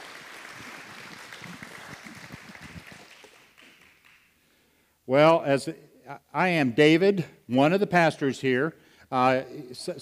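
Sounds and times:
audience applause: 0.0 - 4.3
speech: 5.1 - 10.0.

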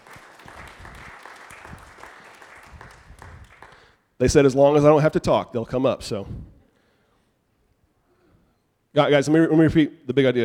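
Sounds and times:
audience applause: 0.0 - 4.0
speech: 4.2 - 6.5, 9.0 - 10.4.

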